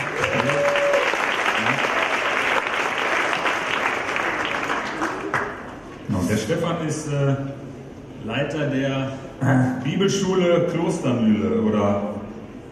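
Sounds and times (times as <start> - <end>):
crowd applauding: 0.0 - 5.9
speech: 6.5 - 7.6, 8.2 - 12.1.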